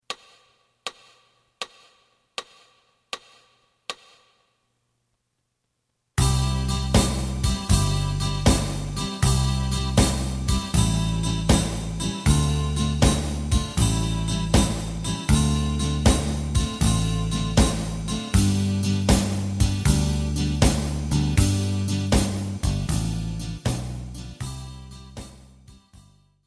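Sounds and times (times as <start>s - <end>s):
lead guitar: 6.2s - 23.6s.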